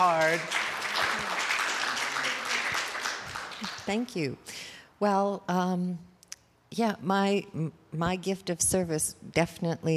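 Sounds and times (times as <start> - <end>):
speech: 0.0 - 0.8, 3.9 - 6.1, 6.7 - 9.9
audience applause: 0.0 - 3.9.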